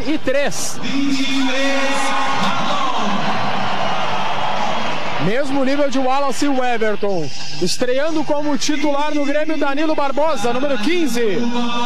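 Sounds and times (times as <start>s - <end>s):
speech: 0.1s - 3.3s, 5.2s - 11.8s
stadium crowd applauding: 0.1s - 7.3s.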